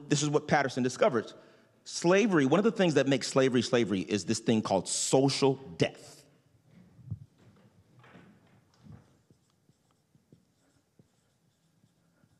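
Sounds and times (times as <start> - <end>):
speech: 0.1 - 6.2
writing terms on a board during a lecture: 8.8 - 12.3.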